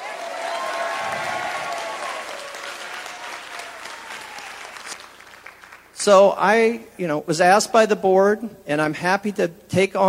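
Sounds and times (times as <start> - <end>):
raised voices cheering: 0.0 - 5.0
audience clapping for a departing colleague: 0.0 - 6.0
speech: 6.0 - 10.0.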